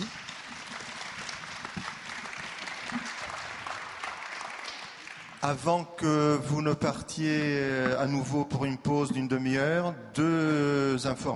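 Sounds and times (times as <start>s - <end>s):
audience applause: 0.0s - 5.4s
speech: 5.4s - 11.3s.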